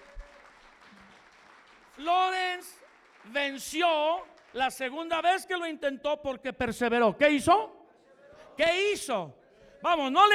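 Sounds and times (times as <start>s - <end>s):
audience applause: 0.0s - 4.8s
speech: 2.0s - 7.8s, 8.6s - 10.3s.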